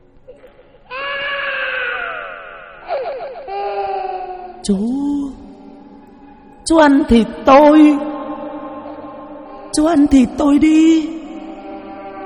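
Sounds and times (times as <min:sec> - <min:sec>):
crying: 0:00.9 - 0:04.7, 0:08.0 - 0:09.8, 0:11.1 - 0:12.2
speech: 0:04.7 - 0:05.1, 0:06.7 - 0:08.1, 0:09.8 - 0:11.2.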